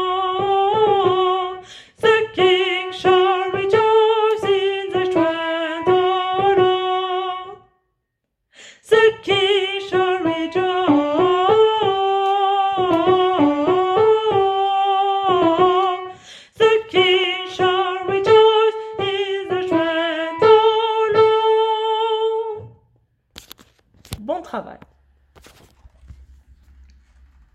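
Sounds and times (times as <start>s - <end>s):
soprano singing: 0.0s - 7.7s, 8.8s - 22.8s.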